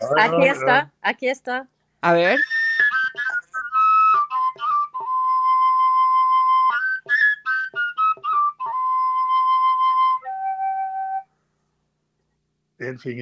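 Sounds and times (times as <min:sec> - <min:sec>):
speech: 0:00.1 - 0:02.5, 0:12.9 - 0:13.2
Norwegian traditional flute made of PVC playing: 0:02.2 - 0:11.3.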